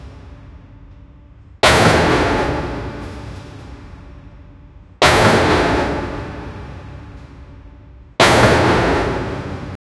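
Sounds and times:
pounding of big heavy metal in a factory: 1.6 - 9.8.

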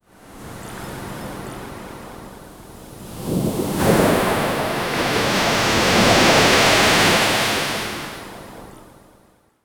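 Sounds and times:
beach ambience: 3.0 - 8.6.

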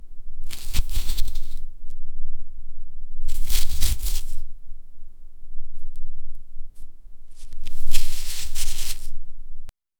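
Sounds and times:
grabbing something: 0.5 - 1.6, 3.3 - 4.4, 7.3 - 9.2.

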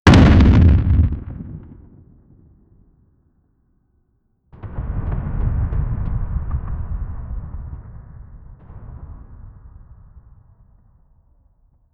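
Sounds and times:
realistic artillery effects: 0.1 - 3.1, 4.6 - 11.6.

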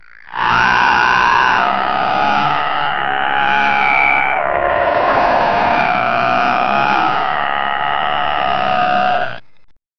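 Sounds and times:
big brown grizzly bear: 0.0 - 9.5.

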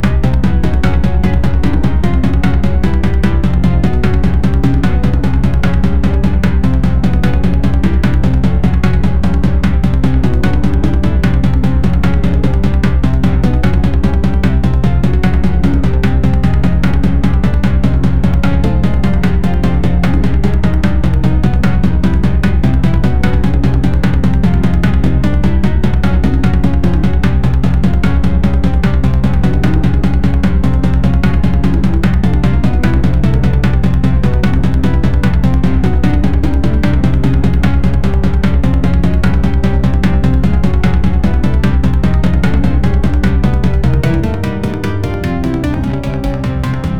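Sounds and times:
futuristic game soundtrack: 0.0 - 46.9.

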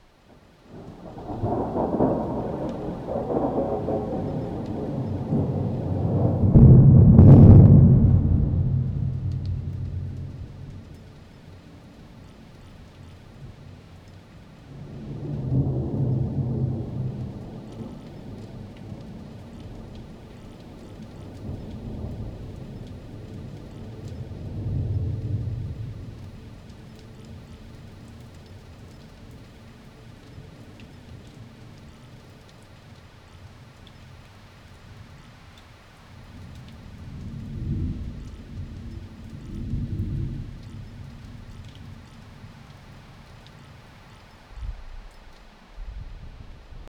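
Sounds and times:
rain: 0.0 - 46.9
thunder: 0.7 - 11.6, 14.7 - 29.6, 36.3 - 42.8.

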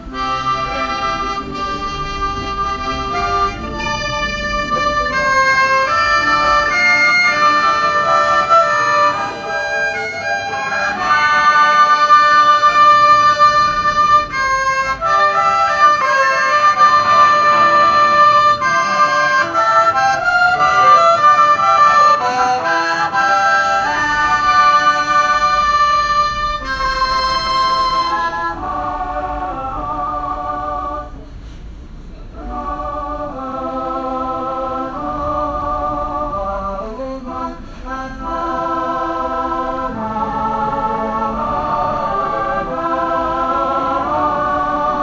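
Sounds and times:
Brazilian classical music: 0.0 - 45.0.

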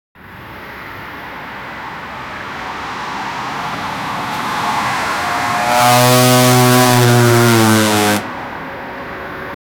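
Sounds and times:
drifting sound: 1.4 - 8.5.

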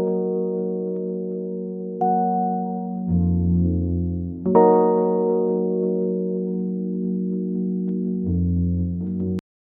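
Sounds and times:
warm melancholic minor lofi music: 0.0 - 9.4.

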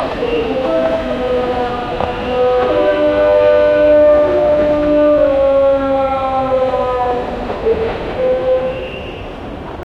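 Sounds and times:
Chennai Central railway station ambience: 0.0 - 9.9.

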